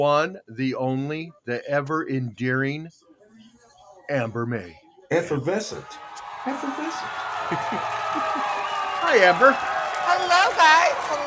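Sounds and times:
speech: 0.0s - 3.1s, 4.1s - 11.2s
applause and cheering sound effect: 5.8s - 11.2s
laughter: 6.6s - 9.5s.

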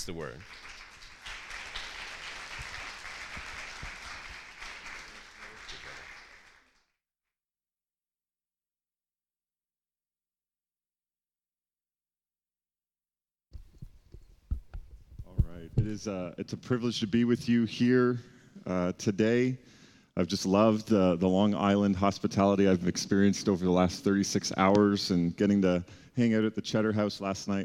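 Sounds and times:
speech: 0.0s - 0.8s, 15.8s - 27.6s
church congregation applauding to welcome a speaker: 0.0s - 7.0s.

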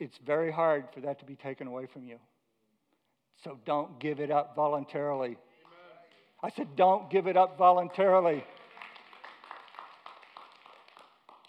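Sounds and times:
speech: 0.0s - 2.3s, 3.4s - 5.5s, 6.4s - 8.6s
golf clap, soft polite clapping: 8.3s - 11.4s.

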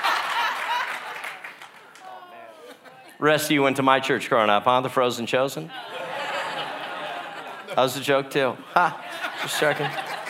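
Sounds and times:
laughter: 0.0s - 1.4s, 2.0s - 3.2s, 5.7s - 10.2s
audience clapping: 0.0s - 2.4s
speech: 3.2s - 6.0s, 7.8s - 10.1s.

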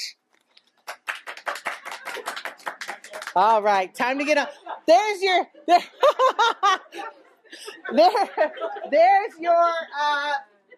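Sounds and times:
audience applause: 0.8s - 3.5s
speech: 3.4s - 7.2s, 7.9s - 10.4s
laughter: 4.2s - 9.6s.

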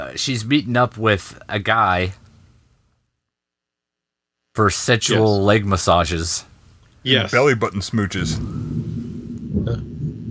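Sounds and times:
speech: 0.0s - 2.2s, 4.6s - 8.7s, 9.5s - 9.9s
thunder from a thunderstorm outside: 8.2s - 10.2s.

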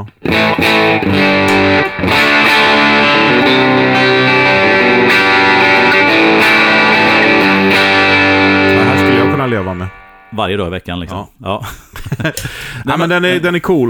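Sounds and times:
speech: 0.0s - 2.1s, 9.5s - 13.8s
overdriven electric guitar played through a pedal and amp: 0.0s - 10.5s
laughter: 11.6s - 12.8s.

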